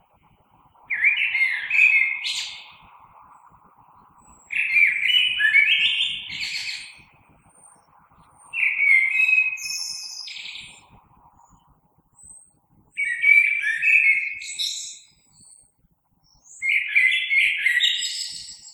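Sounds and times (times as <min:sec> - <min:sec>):
faint steady hum: 0:00.0 - 0:16.6
common blackbird singing: 0:00.9 - 0:02.9, 0:04.3 - 0:07.8, 0:08.4 - 0:11.6, 0:12.2 - 0:15.6, 0:16.3 - 0:18.7.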